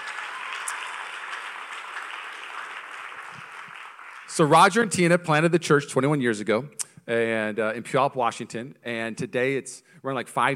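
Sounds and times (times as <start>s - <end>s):
crowd applauding: 0.0s - 4.8s
speech: 4.4s - 10.5s.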